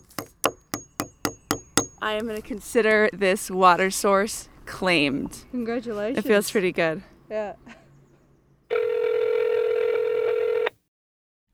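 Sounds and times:
speech: 0:02.0 - 0:07.7
telephone dialing tone: 0:08.7 - 0:10.7.

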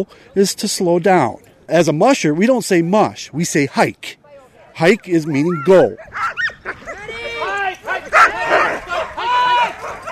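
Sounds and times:
speech: 0:00.0 - 0:04.2, 0:04.8 - 0:06.8
pack of sled dogs barking and yipping excitedly: 0:05.0 - 0:10.1
sled dogs whining: 0:05.4 - 0:07.1.

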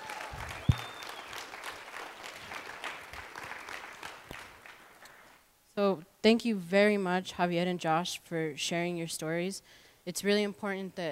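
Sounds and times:
audience applause: 0:00.0 - 0:04.9
speech: 0:05.8 - 0:11.1.

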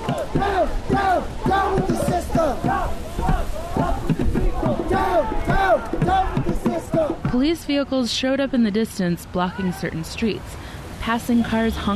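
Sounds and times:
protest march crowd chanting: 0:00.0 - 0:07.4
speech: 0:00.3 - 0:02.6, 0:07.3 - 0:11.9.

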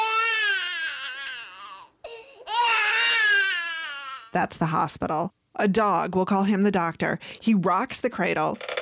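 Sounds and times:
baby crying: 0:00.0 - 0:04.4
speech: 0:04.4 - 0:08.7.

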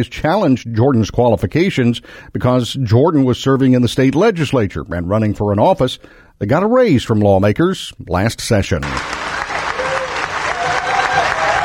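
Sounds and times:
speech: 0:00.0 - 0:09.2
audience cheering at the Osage Casino in Ponca City: 0:08.8 - 0:11.6.

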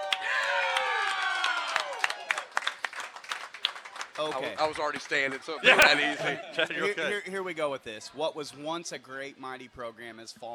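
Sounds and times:
Indiana Hoosier fans cheering and whooping: 0:00.0 - 0:02.5
scattered individual claps: 0:00.0 - 0:06.0
laughter: 0:04.2 - 0:07.4
speech: 0:04.2 - 0:10.5.

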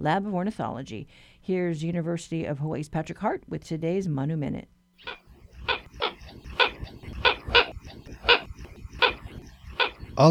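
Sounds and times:
speech: 0:00.0 - 0:05.2
Hawaiian coot calls: 0:05.0 - 0:10.2.

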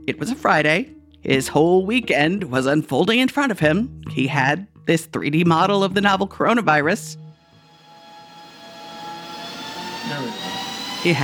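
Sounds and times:
speech: 0:00.1 - 0:07.2, 0:10.1 - 0:11.2
computer server buzzing: 0:07.3 - 0:11.2.

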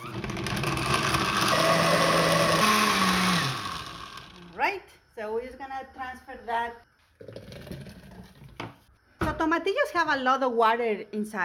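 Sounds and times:
blender running: 0:00.0 - 0:04.4
speech: 0:05.8 - 0:07.4, 0:09.4 - 0:11.4.

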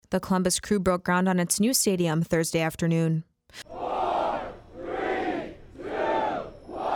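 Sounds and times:
speech: 0:00.1 - 0:03.7
fans cheering at the Columbus Crew stadium groundbreaking: 0:03.7 - 0:06.9.

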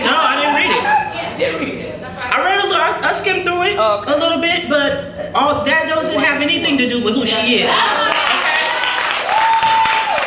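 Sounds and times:
laughter: 0:00.0 - 0:01.7, 0:07.6 - 0:08.9
family cheering at a ceremony: 0:00.0 - 0:10.2
speech: 0:07.2 - 0:08.0
family applauding at a ceremony: 0:08.1 - 0:10.2.

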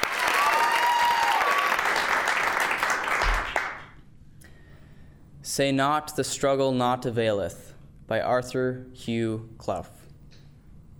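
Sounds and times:
audience applause: 0:00.0 - 0:03.9
speech: 0:05.6 - 0:10.0.

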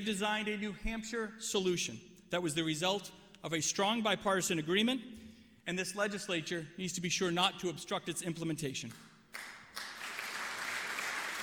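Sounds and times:
speech: 0:00.0 - 0:09.5
crowd applause during a state legislative address: 0:09.4 - 0:11.4.

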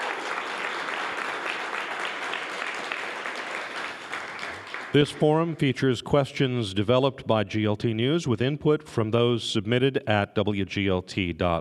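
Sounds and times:
audience applause welcoming election candidates at a live forum: 0:00.0 - 0:05.1
speech: 0:04.9 - 0:11.5.

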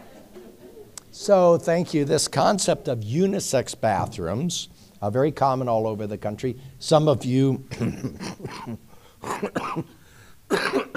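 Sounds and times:
speech: 0:01.2 - 0:10.8
person coughing from lingering bronchitis: 0:07.7 - 0:10.9.

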